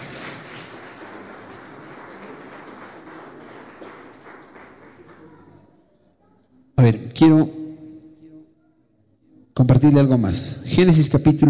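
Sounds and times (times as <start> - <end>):
audience applause: 0.0 - 5.6
speech: 6.8 - 7.6, 9.6 - 11.4.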